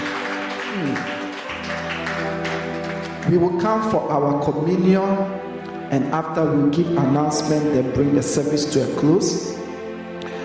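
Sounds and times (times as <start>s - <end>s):
audience clapping: 0.0s - 3.9s
speech: 0.8s - 1.2s, 3.3s - 9.5s.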